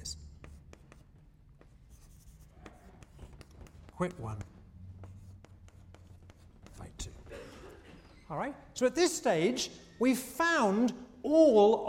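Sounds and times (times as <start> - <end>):
pen scratching in handwriting: 0.4 - 7.1
speech: 4.0 - 4.5, 8.3 - 11.8.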